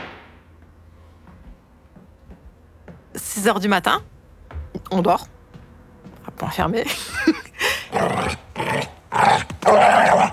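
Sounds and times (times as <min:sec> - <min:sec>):
speech: 0:03.2 - 0:04.1, 0:04.9 - 0:05.4, 0:06.4 - 0:07.4
dog barking and growling: 0:07.9 - 0:10.3.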